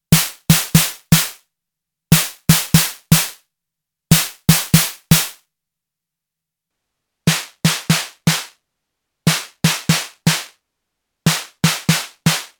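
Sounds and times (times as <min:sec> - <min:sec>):
snare drum: 0:00.1 - 0:01.4, 0:02.1 - 0:03.4, 0:04.1 - 0:05.4, 0:07.3 - 0:08.6, 0:09.3 - 0:10.6, 0:11.3 - 0:12.5.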